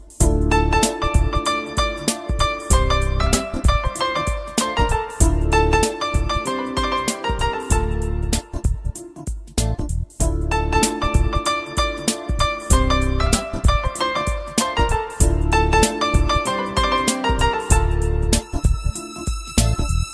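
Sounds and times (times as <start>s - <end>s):
cool ringtone: 0.4s - 8.6s, 10.4s - 20.1s.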